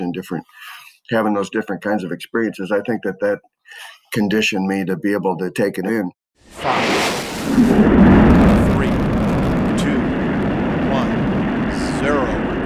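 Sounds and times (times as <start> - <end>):
speech: 0.1 - 7.8
Space Shuttle Atlantis liftoff rumble: 6.5 - 12.6.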